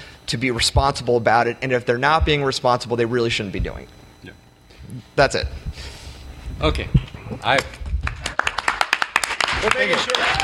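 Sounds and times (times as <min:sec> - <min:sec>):
speech: 0:00.3 - 0:05.9, 0:06.6 - 0:07.8, 0:09.6 - 0:10.4
audience applause: 0:08.0 - 0:10.4.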